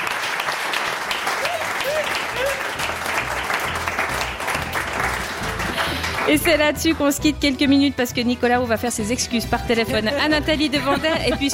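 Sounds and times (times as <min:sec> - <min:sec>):
audience applause: 0:00.0 - 0:06.8
speech: 0:06.3 - 0:11.5
laughter: 0:09.9 - 0:11.5.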